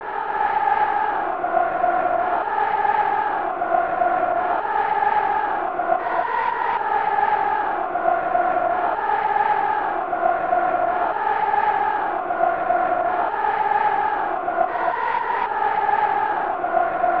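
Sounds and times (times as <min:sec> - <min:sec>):
crowd chanting: 0:00.0 - 0:17.1.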